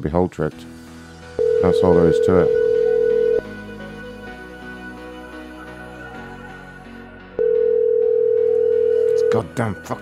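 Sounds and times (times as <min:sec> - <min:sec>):
speech: 0:00.0 - 0:00.8, 0:01.6 - 0:02.6, 0:09.3 - 0:10.0
telephone dial tone after a hung-up call: 0:01.4 - 0:03.4, 0:07.4 - 0:09.4.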